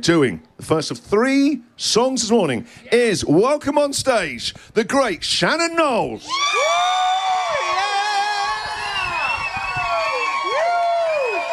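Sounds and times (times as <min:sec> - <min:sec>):
speech: 0:00.0 - 0:07.0
audience applause: 0:06.4 - 0:11.5.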